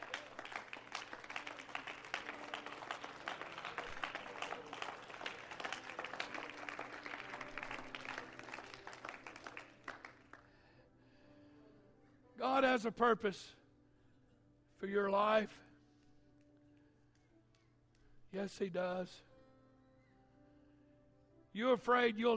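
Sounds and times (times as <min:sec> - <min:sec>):
audience clapping hands: 0:00.0 - 0:10.5
speech: 0:12.6 - 0:13.6, 0:14.8 - 0:15.7, 0:18.3 - 0:19.3, 0:21.6 - 0:22.3.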